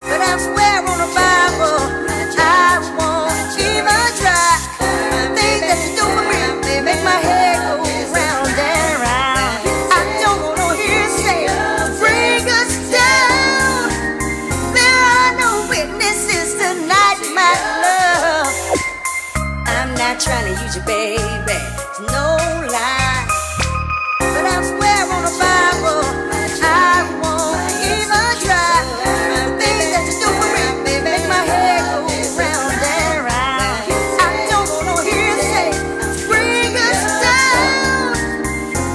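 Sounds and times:
jazz ringtone: 0:00.0 - 0:38.9.

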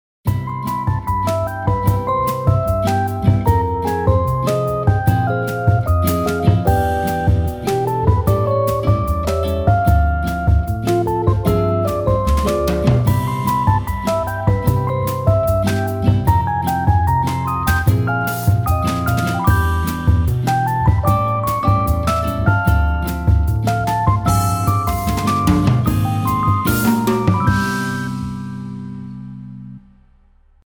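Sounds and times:
bossa nova music: 0:00.3 - 0:29.8.

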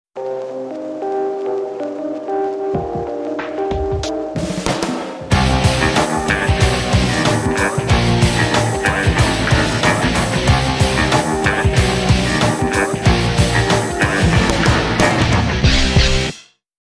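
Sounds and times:
musical riff: 0:00.2 - 0:16.3.

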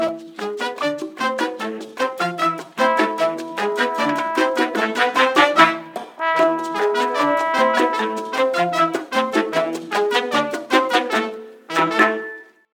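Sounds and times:
rumba ringtone: 0:00.0 - 0:12.7.

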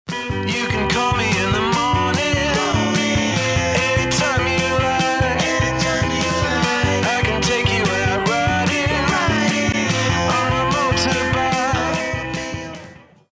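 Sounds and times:
groove music: 0:00.1 - 0:13.3.

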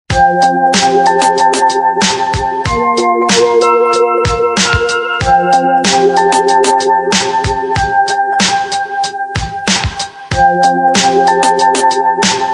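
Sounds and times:
R&B music: 0:00.1 - 0:12.5.

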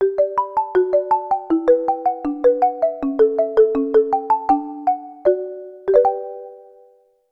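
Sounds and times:
delicate ringtone: 0:00.0 - 0:07.2.

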